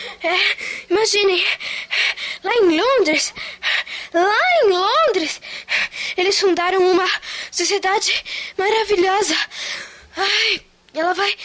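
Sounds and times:
woman panting out of breath: 0.0s - 4.2s, 5.2s - 6.2s, 7.1s - 8.6s, 9.3s - 10.7s
speech: 0.1s - 1.8s, 2.4s - 11.4s.

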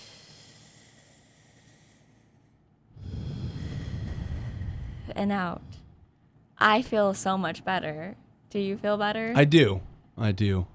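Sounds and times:
deep breath in during a guided breathing exercise: 0.0s - 6.3s
speech: 5.1s - 5.8s, 6.6s - 10.7s.

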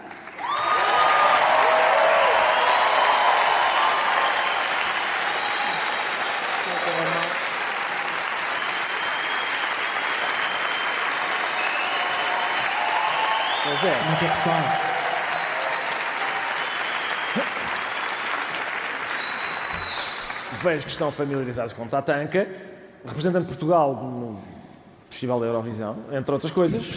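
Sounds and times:
crowd cheering: 0.0s - 20.9s
large audience applause: 0.0s - 21.5s
speech: 14.1s - 14.8s, 20.6s - 24.5s, 25.1s - 26.9s.

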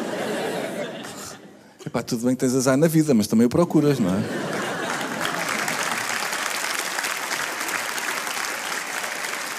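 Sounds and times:
laughter: 0.0s - 1.6s, 3.9s - 6.6s
speech: 1.9s - 4.5s
audience applause: 4.4s - 9.5s.

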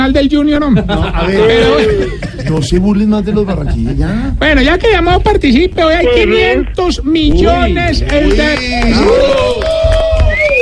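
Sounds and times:
speech: 0.1s - 10.0s
laughter: 0.7s - 4.2s
studio audience applauding: 7.4s - 10.5s.

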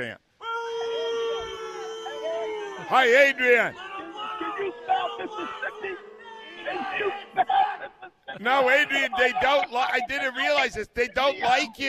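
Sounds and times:
speech: 0.0s - 0.2s, 2.9s - 3.8s, 8.4s - 11.8s
crowd booing: 0.4s - 11.8s
laughter: 1.0s - 11.8s.

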